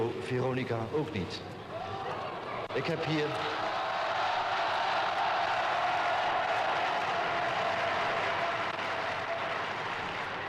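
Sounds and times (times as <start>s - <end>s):
speech: 0.3s - 1.6s, 2.8s - 3.7s
audience applause: 3.7s - 10.4s.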